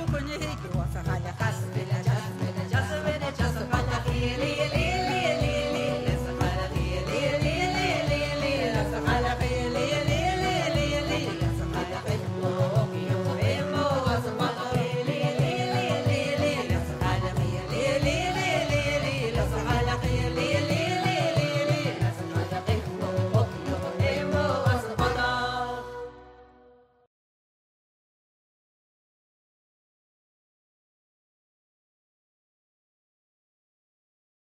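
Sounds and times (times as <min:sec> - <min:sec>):
traditional Celtic song: 0:00.0 - 0:26.7.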